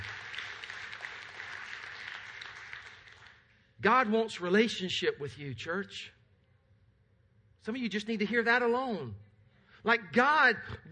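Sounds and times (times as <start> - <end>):
crowd clapping: 0.0 - 3.6
speech: 3.8 - 6.2, 7.6 - 10.8.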